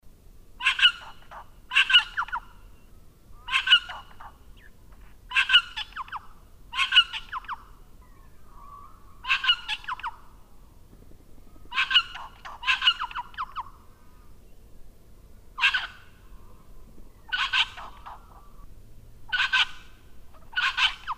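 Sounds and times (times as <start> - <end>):
red wattlebird giving harsh raspy coughing notes: 0.6 - 10.4, 11.6 - 14.3, 15.6 - 18.6, 19.3 - 21.1.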